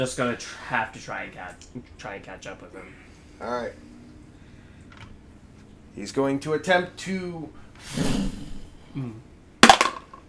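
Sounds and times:
speech: 0.0s - 3.9s, 6.0s - 9.3s
dice rolling against a bowl: 9.6s - 10.2s.

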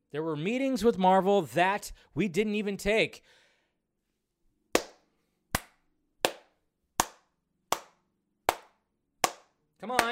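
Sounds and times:
speech: 0.1s - 3.4s, 9.8s - 10.1s
audience clapping: 8.5s - 10.1s.

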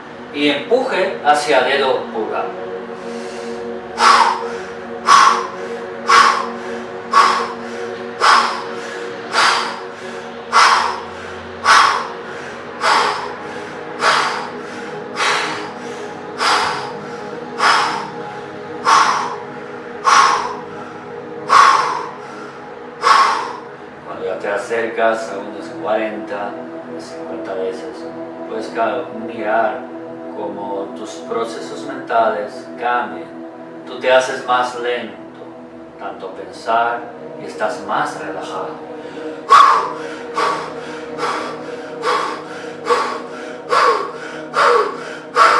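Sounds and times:
tonal drone: 0.0s - 45.5s
speech: 0.4s - 2.7s, 36.7s - 38.9s
deep forceful hyperventilation breathing: 2.7s - 24.0s, 38.7s - 45.5s.

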